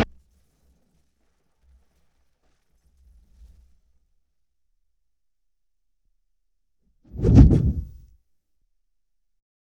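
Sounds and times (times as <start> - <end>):
explosion: 7.2 - 8.0.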